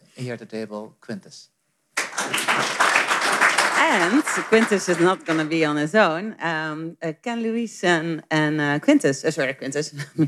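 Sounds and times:
speech: 0.2 - 1.6, 3.8 - 10.2
audience applause: 2.0 - 5.6.

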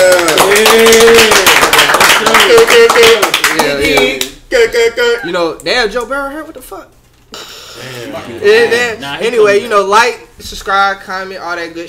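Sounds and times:
hand clapping: 0.0 - 4.4
speech: 4.8 - 11.8.

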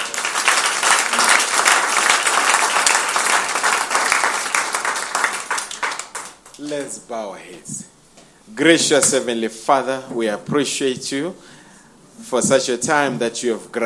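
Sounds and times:
crowd applause: 0.0 - 6.6
speech: 6.6 - 11.6, 12.2 - 13.8.

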